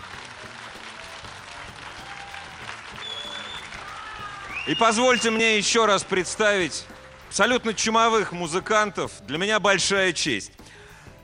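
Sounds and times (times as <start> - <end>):
audience applause: 0.0 - 7.8
whistle: 3.0 - 3.8, 4.4 - 5.6
speech: 4.7 - 10.6.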